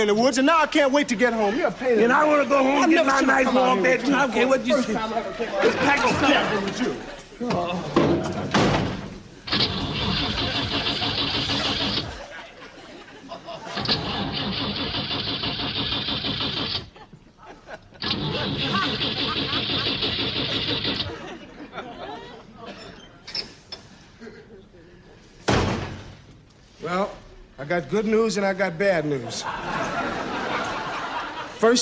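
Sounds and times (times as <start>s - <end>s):
speech: 0.0s - 8.4s, 26.8s - 30.4s, 31.6s - 31.8s
laughter: 1.3s - 8.6s, 9.6s - 15.4s, 16.6s - 23.3s, 29.2s - 31.8s
door slam: 8.0s - 12.2s, 13.7s - 16.9s, 25.4s - 26.2s
truck engine cranking but failing to start: 8.8s - 12.4s, 13.6s - 17.0s, 18.0s - 21.4s.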